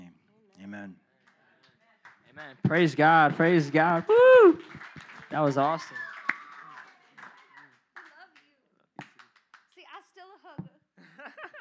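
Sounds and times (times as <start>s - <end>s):
speech: 0.7s - 1.0s, 2.3s - 6.1s
audience clapping: 1.2s - 9.8s
laughter: 11.0s - 11.5s.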